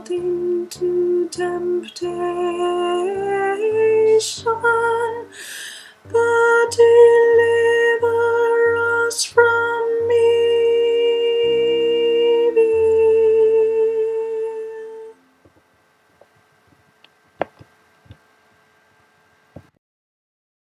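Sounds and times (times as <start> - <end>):
soprano singing a prayer: 0.0 - 15.4.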